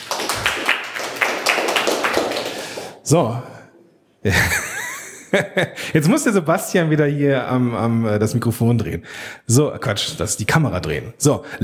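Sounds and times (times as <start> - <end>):
applause: 0.0 - 3.0
speech: 3.1 - 3.5, 4.2 - 4.6, 5.3 - 11.6.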